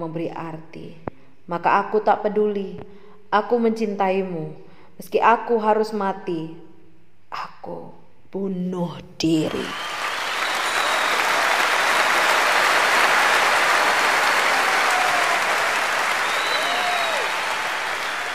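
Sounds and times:
speech: 0:00.0 - 0:06.7, 0:07.3 - 0:09.9
standing audience thunderous applause after performance: 0:09.5 - 0:18.3.

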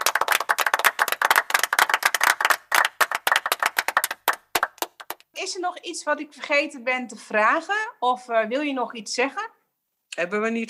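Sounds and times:
applause: 0:00.0 - 0:05.3
speech: 0:05.5 - 0:09.6, 0:10.2 - 0:10.6.

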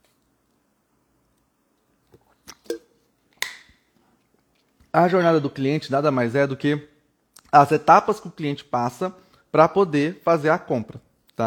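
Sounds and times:
person drinking a sip of water: 0:02.0 - 0:03.1
speech: 0:05.0 - 0:06.9, 0:07.5 - 0:11.4.

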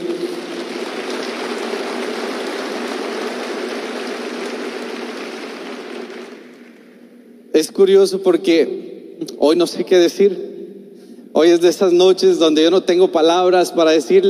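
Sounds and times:
audience applause: 0:00.0 - 0:06.8
speech: 0:07.6 - 0:10.5, 0:11.4 - 0:14.2.

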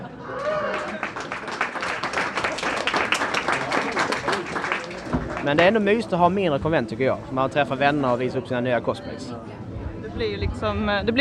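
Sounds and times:
audience applause: 0:00.0 - 0:05.9
speech: 0:05.5 - 0:11.2.

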